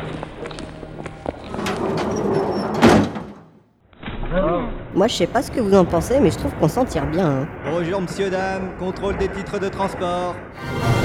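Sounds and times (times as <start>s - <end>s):
metro train sliding doors rumbling and clattering open: 1.5s - 3.4s
faint chatter: 5.0s - 7.5s
steady hum of metro station and train noise: 5.0s - 7.5s
speech: 5.0s - 10.9s.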